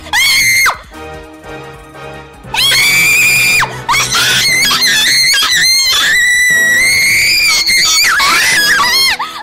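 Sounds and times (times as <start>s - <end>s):
person screaming: 2.6s - 9.2s.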